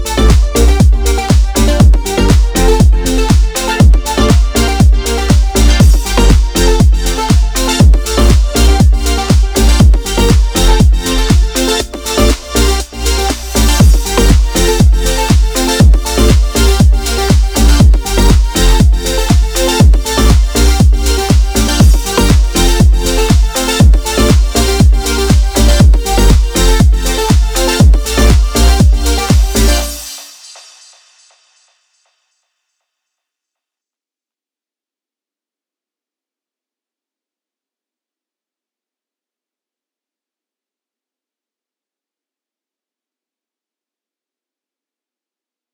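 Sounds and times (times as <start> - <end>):
added ambience: 0.0 - 30.3
rave music mix: 0.0 - 30.4.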